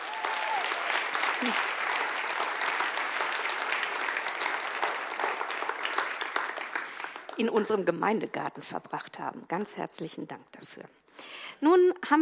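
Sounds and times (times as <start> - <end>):
audience applause: 0.0 - 7.5
speech: 1.4 - 1.7, 7.4 - 12.1.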